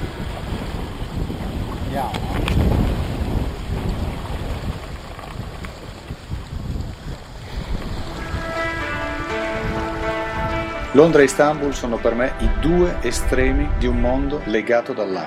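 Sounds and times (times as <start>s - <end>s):
river water: 0.0s - 13.3s
boat passing on a river: 0.0s - 14.5s
speech: 11.0s - 15.2s.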